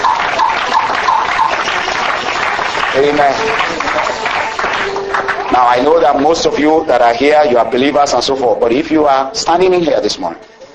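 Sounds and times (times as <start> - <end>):
congregation clapping in church: 0.0 - 6.8
speech: 3.0 - 10.5.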